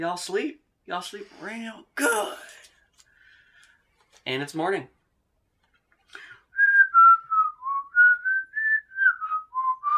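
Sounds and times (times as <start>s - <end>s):
speech: 0.0s - 2.7s, 4.2s - 5.0s
person whistling bird-like tune imitating morning birds chirping: 6.5s - 9.9s.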